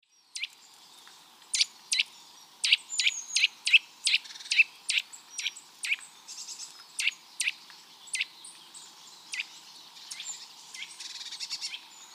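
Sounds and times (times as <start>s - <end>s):
Eurasian nuthatch Sitta europaea calling: 0.0s - 12.1s.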